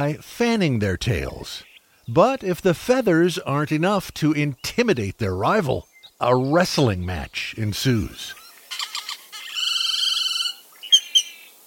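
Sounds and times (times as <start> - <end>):
speech: 0.0 - 8.4
Great-tailed Grackle calls: 5.8 - 11.6.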